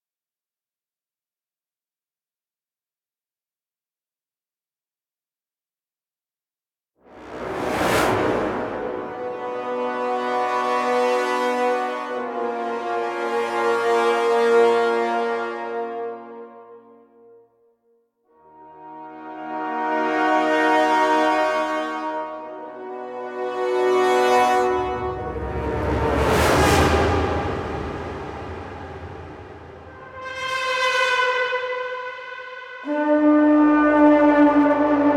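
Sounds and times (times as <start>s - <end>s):
heavy brass: 7.1s - 16.5s, 18.5s - 35.0s.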